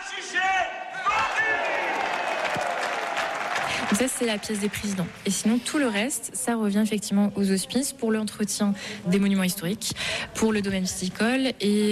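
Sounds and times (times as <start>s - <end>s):
auction crowd shouting together: 0.0s - 3.6s
crowd cheering and clapping: 1.0s - 5.9s
speech: 4.0s - 11.8s.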